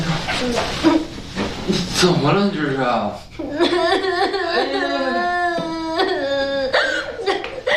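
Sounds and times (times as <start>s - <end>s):
speech: 0.4s - 1.1s, 1.7s - 5.2s
person crying: 3.4s - 7.7s.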